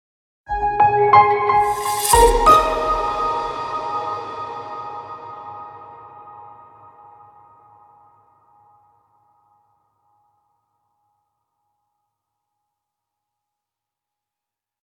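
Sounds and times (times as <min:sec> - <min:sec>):
sound logo: 0:01.6 - 0:05.7.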